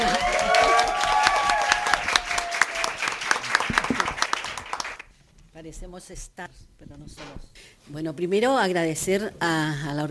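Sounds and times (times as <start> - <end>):
faint cheers: 0.0 - 3.1
audience applause: 0.0 - 5.0
speech: 6.0 - 10.0.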